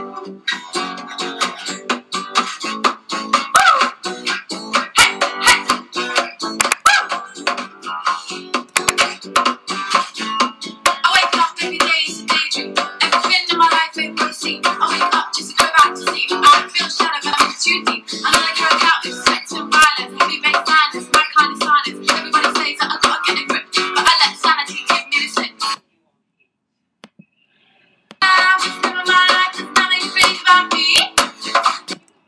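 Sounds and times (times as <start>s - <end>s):
acoustic cover drums: 0.6s - 25.8s, 28.2s - 32.0s.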